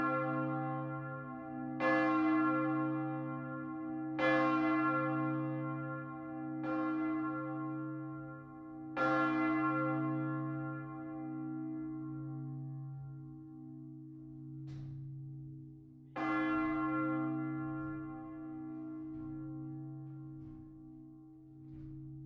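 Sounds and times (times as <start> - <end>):
church bells of the Martinskirche in Chur ringing: 0.0 - 22.2.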